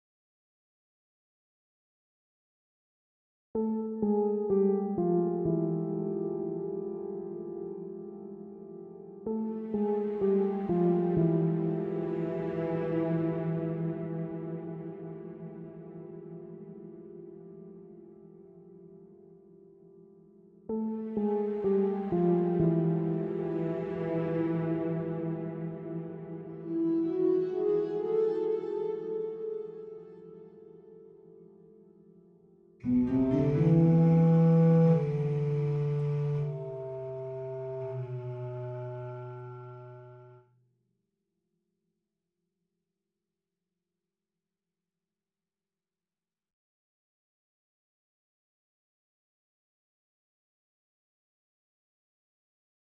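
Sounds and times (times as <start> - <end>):
piano piece with additional instruments: 3.6 - 40.4.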